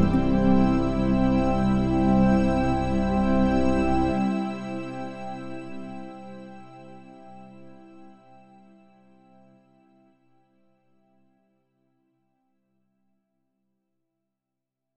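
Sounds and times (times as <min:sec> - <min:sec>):
instrumental music: 0:00.0 - 0:06.2.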